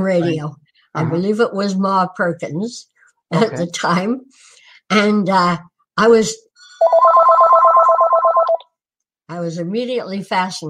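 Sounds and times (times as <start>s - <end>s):
speech: 0.0s - 7.1s, 9.3s - 10.6s
telephone ringing with a warbling trill: 6.8s - 8.7s.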